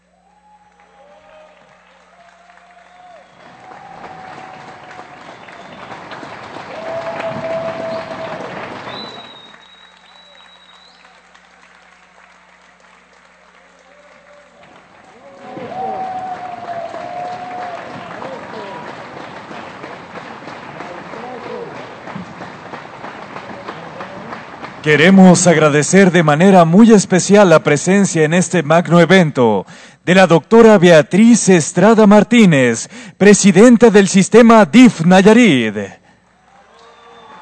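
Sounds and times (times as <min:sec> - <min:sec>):
audience applause for performing artists: 0:00.3 - 0:26.6, 0:36.4 - 0:37.3
speech: 0:24.8 - 0:36.0.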